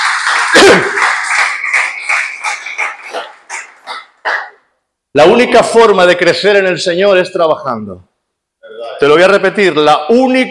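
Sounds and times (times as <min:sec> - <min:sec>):
crowd applause: 0:00.0 - 0:04.4
speech: 0:00.5 - 0:01.0, 0:05.2 - 0:08.1, 0:09.0 - 0:10.4.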